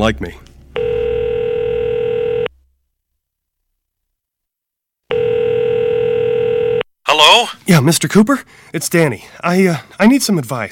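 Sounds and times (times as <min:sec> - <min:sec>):
speech: 0:00.0 - 0:00.4, 0:07.3 - 0:10.7
telephone line ringing tone through the receiver: 0:00.8 - 0:02.5, 0:05.1 - 0:06.9.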